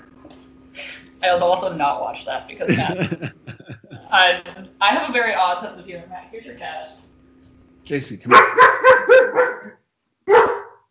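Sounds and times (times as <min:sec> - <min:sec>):
speech: 0:01.2 - 0:03.5, 0:04.1 - 0:07.0, 0:07.8 - 0:09.8
laughter: 0:02.6 - 0:05.3
dog barking excitedly: 0:08.3 - 0:10.9.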